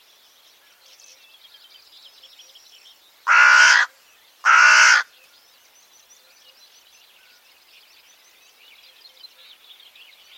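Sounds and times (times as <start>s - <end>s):
other birds twittering: 0.0s - 10.3s
bird cawing: 3.3s - 5.1s.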